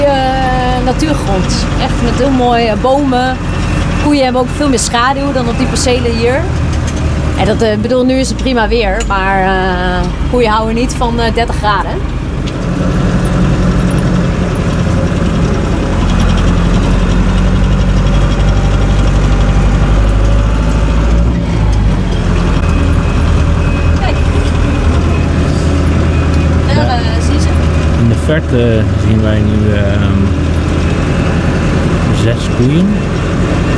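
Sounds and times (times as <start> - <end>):
car engine rumble while driving along a road: 0.0 - 33.7
speech: 0.9 - 6.6, 7.4 - 12.2, 28.3 - 30.4, 32.2 - 33.2.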